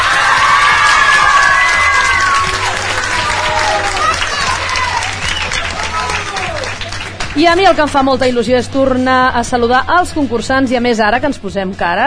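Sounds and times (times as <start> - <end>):
crowd of young student supporters cheering and shouting: 0.0 - 6.9
steady clapping from student supporters: 0.0 - 8.3
speech: 7.4 - 12.0.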